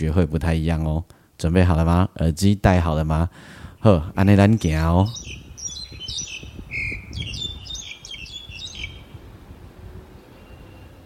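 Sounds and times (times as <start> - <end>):
speech: 0.0 - 5.4
bird singing: 3.8 - 9.2, 10.3 - 11.0.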